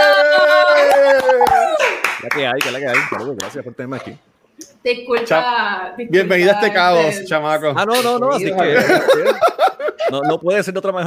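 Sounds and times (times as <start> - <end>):
laughter: 0.6 - 2.0, 8.4 - 10.6
applause: 0.7 - 3.5
speech: 2.4 - 11.0.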